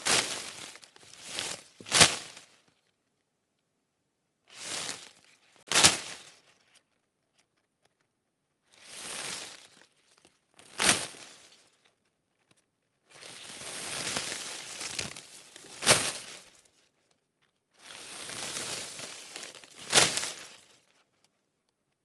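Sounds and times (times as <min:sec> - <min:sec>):
large thick hedge leaves slapped against each other: 0:00.0 - 0:02.5, 0:04.6 - 0:06.5, 0:08.8 - 0:09.9, 0:10.6 - 0:11.7, 0:13.2 - 0:16.7, 0:17.8 - 0:21.0.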